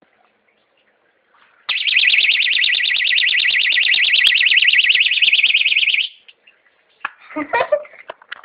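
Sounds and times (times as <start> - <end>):
bag alarm going off: 1.7 - 6.3.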